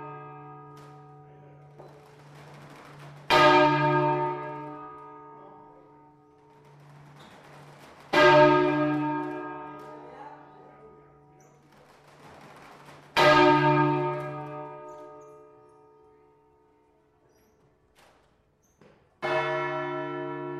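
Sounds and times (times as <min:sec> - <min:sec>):
bell: 0:00.0 - 0:11.6, 0:13.2 - 0:16.2, 0:19.2 - 0:20.5.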